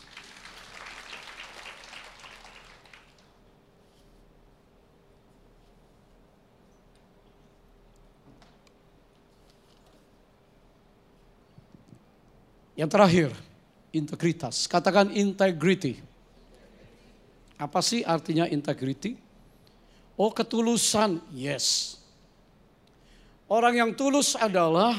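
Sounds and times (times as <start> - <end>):
audience applause: 0.0 - 3.4
speech: 12.8 - 16.1, 17.6 - 19.2, 20.2 - 22.0, 23.5 - 24.9.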